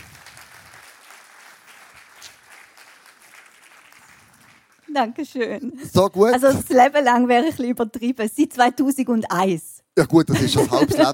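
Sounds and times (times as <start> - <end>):
audience applause: 0.0 - 4.9
speech: 4.9 - 11.1
laughter: 10.1 - 11.1.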